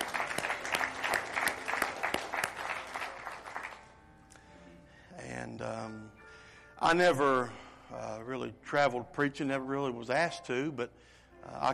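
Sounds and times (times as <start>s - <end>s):
audience applause: 0.0s - 3.9s
speech: 6.9s - 7.6s, 8.2s - 11.7s.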